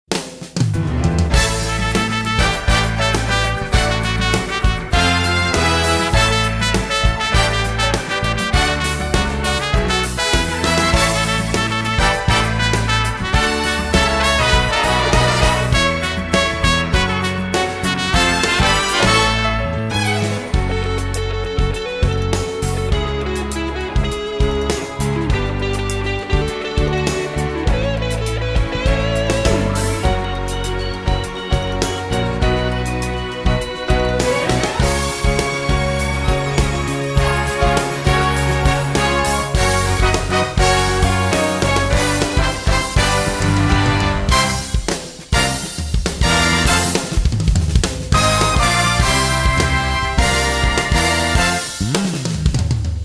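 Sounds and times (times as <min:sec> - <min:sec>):
exit music: 0:00.0 - 0:53.0.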